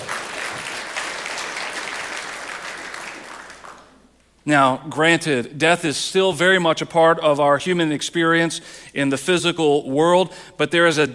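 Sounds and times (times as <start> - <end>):
audience hand clapping: 0.0 - 4.2
speech: 4.4 - 11.1.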